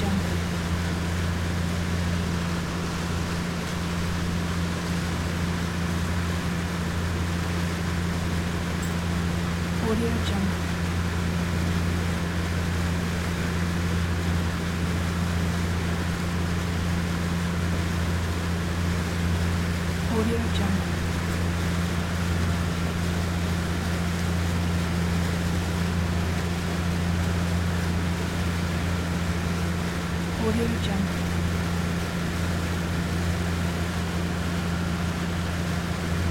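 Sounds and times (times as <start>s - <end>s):
motorboat ride: 0.0s - 36.2s.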